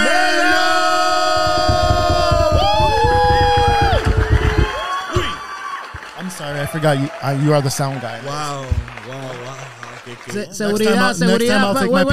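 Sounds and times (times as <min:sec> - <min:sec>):
audience applause and cheering: 0:00.0 - 0:10.6
speech: 0:06.7 - 0:09.4, 0:10.1 - 0:12.1.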